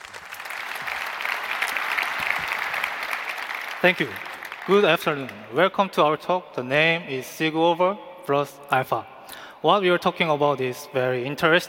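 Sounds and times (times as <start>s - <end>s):
audience applause: 0.0s - 5.3s
speech: 3.8s - 11.6s.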